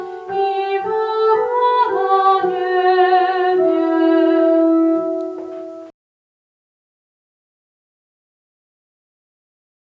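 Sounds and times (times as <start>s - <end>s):
sopranos singing: 0.0s - 5.6s.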